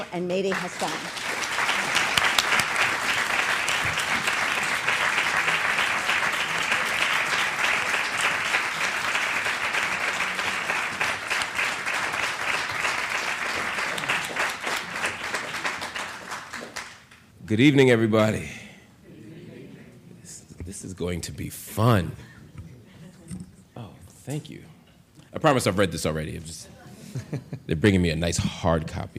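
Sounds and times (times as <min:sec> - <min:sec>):
speech: 0:00.0 - 0:01.3, 0:17.5 - 0:18.6, 0:21.0 - 0:22.3, 0:24.3 - 0:24.7, 0:25.3 - 0:29.1
audience applause welcoming guests on stage: 0:00.0 - 0:17.2.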